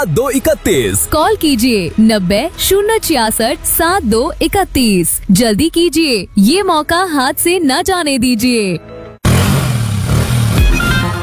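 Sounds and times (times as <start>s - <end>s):
speech: 0.0s - 9.0s
motorcycle engine revving: 9.2s - 11.2s.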